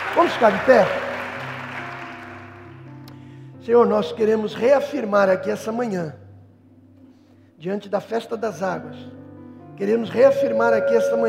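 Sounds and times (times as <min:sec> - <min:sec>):
audience applauding: 0:00.0 - 0:03.1
speech: 0:00.2 - 0:01.0, 0:03.7 - 0:06.2, 0:07.6 - 0:09.2, 0:09.8 - 0:11.2
low sustained musical tone humming: 0:02.4 - 0:07.8, 0:08.4 - 0:11.2.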